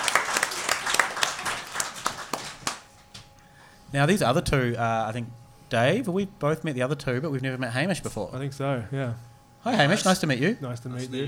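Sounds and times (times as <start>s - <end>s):
crowd clapping: 0.0s - 3.0s
speech: 3.9s - 11.2s.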